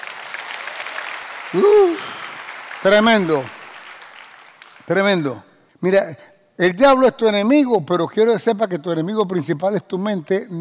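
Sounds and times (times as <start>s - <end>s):
audience applauding: 0.0s - 5.2s
shouts of cheering: 0.4s - 2.4s
speech: 1.5s - 2.1s, 2.8s - 3.6s, 4.9s - 10.5s.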